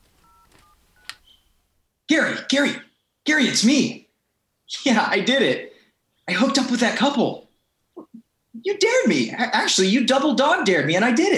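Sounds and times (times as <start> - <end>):
telephone keypad tones beeping as a number is dialed: 0.0 - 1.4
speech: 2.2 - 4.0, 4.7 - 5.7, 6.3 - 7.4, 8.6 - 11.3.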